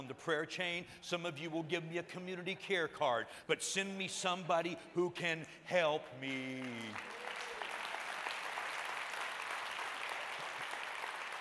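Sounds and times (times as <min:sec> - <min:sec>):
speech: 0:00.1 - 0:07.2
audience applause: 0:06.3 - 0:11.3.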